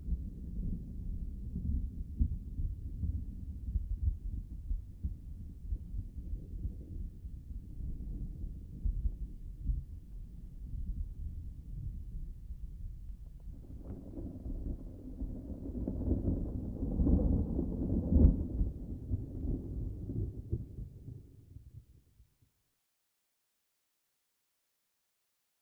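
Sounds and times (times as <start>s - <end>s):
thunder rumble: 0.0s - 21.8s.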